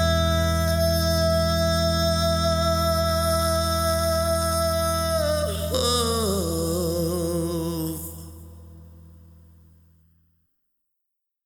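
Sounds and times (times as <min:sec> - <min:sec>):
karaoke harmony singing: 0:00.0 - 0:08.6.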